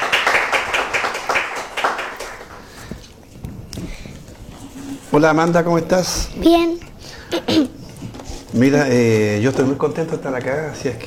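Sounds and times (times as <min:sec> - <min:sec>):
audience applause: 0:00.0 - 0:02.8
speech: 0:05.1 - 0:06.8, 0:08.6 - 0:11.0.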